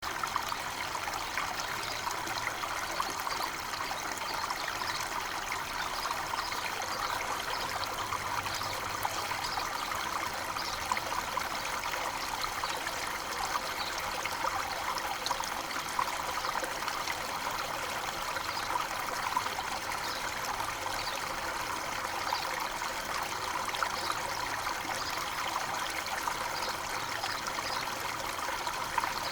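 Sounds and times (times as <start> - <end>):
waterfall: 0.0 - 29.3.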